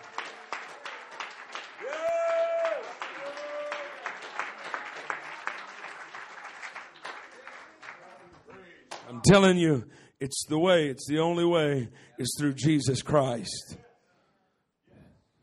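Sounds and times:
audience clapping: 0.0s - 9.2s
speech: 9.3s - 13.8s.

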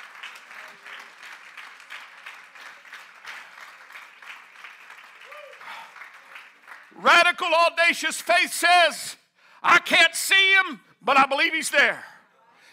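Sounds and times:
audience hand clap of praise: 0.0s - 7.1s
speech: 7.0s - 12.1s.

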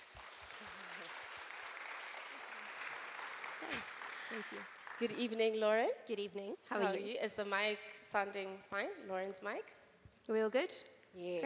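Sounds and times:
audience clapping: 0.0s - 5.5s
speech: 3.7s - 11.4s.

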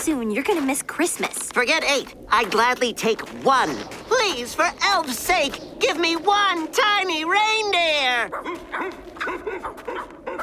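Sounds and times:
speech: 0.0s - 10.4s
wolves yipping: 8.2s - 10.4s.

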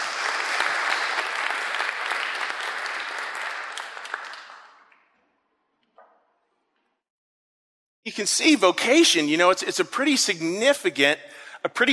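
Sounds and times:
round of applause: 0.0s - 5.2s
speech: 8.1s - 11.9s.

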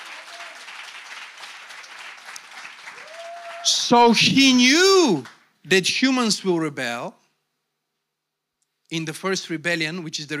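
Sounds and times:
crowd clapping: 0.0s - 5.5s
speech: 3.6s - 7.2s, 8.9s - 10.3s.

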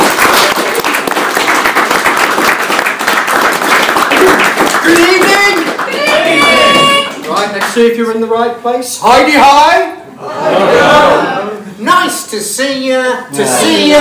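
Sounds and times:
audience applause: 0.0s - 7.8s
people whooping and cheering: 4.1s - 7.2s
speech: 7.7s - 13.9s.

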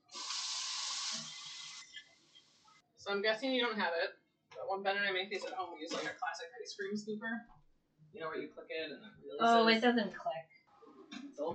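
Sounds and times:
water running from a kitchen tap as hands are washed: 0.0s - 2.1s
speech: 3.1s - 10.5s, 11.4s - 11.5s.

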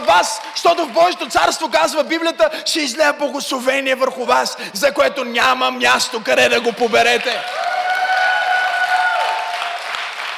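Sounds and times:
church audience applauding: 0.0s - 2.0s, 6.6s - 10.3s
speech: 0.1s - 7.7s.

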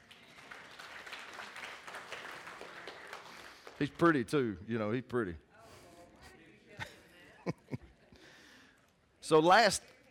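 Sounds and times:
audience applause: 0.0s - 4.0s
speech: 3.8s - 5.5s, 9.3s - 9.9s
laughter: 6.8s - 8.2s.

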